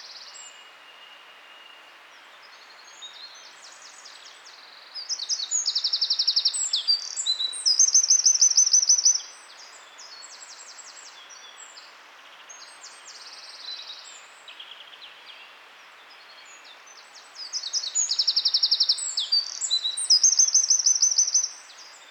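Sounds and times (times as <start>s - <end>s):
hiss: 0.0s - 22.0s
Eurasian wren song: 17.7s - 21.6s.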